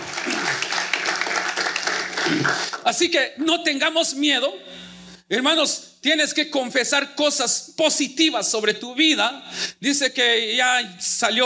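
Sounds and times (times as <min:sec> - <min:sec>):
audience applause: 0:00.0 - 0:02.8
speech: 0:02.3 - 0:11.4.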